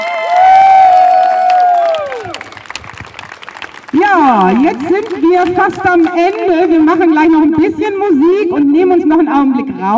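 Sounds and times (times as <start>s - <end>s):
audience applause and cheering: 0.0s - 6.8s
speech: 4.1s - 9.9s.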